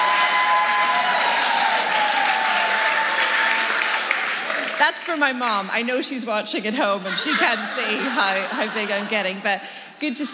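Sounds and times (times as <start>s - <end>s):
church audience applause and cheering: 0.0s - 5.1s
speech: 4.8s - 10.3s
laughter: 6.7s - 10.3s.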